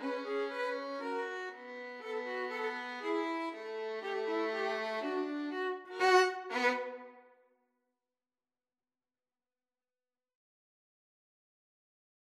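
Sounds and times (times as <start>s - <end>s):
violin duet: 0.0s - 7.2s.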